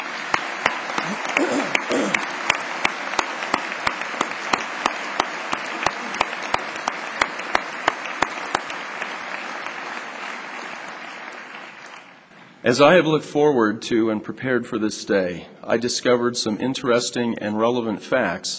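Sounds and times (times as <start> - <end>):
audience applause for graduates: 0.0 - 12.3
speech: 1.1 - 1.8, 12.7 - 18.5.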